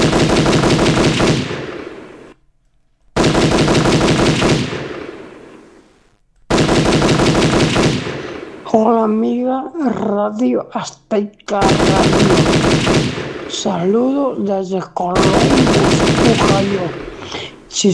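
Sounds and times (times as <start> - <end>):
rapid gunfire: 0.0 - 2.4, 3.2 - 5.9, 6.5 - 8.9, 11.6 - 13.9, 15.2 - 17.6
speech: 8.7 - 17.9.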